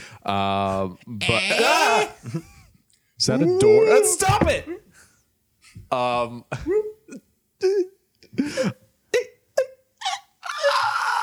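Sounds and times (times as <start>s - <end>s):
speech: 0.2s - 2.6s, 3.2s - 4.9s, 5.7s - 8.8s
breathless scream: 10.0s - 11.2s.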